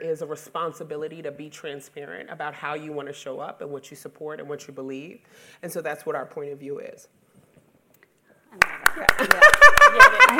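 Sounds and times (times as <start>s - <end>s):
speech: 0.0s - 7.2s, 8.5s - 10.3s
audience rhythmic clapping: 8.6s - 10.3s
people laughing: 9.0s - 10.3s.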